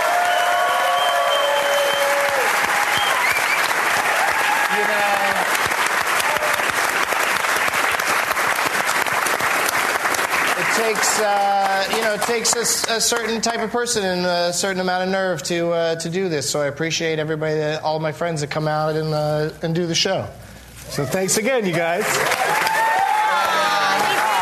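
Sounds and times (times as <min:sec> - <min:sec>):
high whoops and cheering voices: 0:00.0 - 0:05.4, 0:06.2 - 0:06.7, 0:22.1 - 0:24.3
audience applause: 0:00.0 - 0:13.4, 0:21.5 - 0:24.3
speech: 0:10.9 - 0:22.6.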